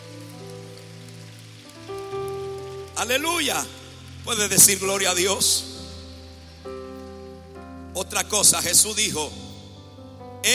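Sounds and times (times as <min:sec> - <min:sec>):
crowd applause: 0:00.0 - 0:04.9
speech: 0:03.0 - 0:05.8, 0:08.0 - 0:09.6.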